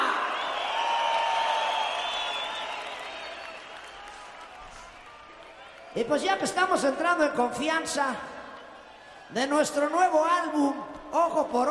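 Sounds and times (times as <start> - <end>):
audience applause: 0.0 - 6.0
speech: 6.0 - 8.3, 9.3 - 11.6.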